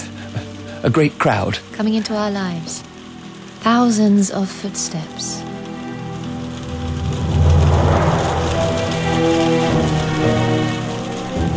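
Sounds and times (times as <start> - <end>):
rain falling: 0.0 - 11.5
speech: 0.8 - 2.9, 3.6 - 5.6.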